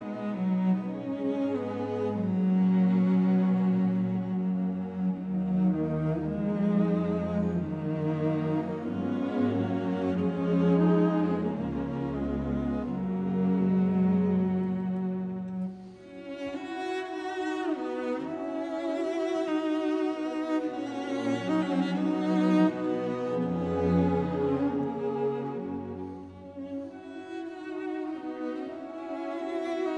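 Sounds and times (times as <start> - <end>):
cello: 0.0 - 29.9
string orchestra: 0.0 - 29.9.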